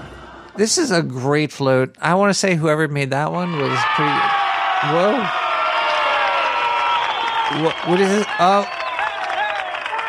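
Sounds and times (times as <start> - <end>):
speech: 0.6 - 5.4, 7.5 - 8.8
crowd applauding and cheering: 3.4 - 10.0.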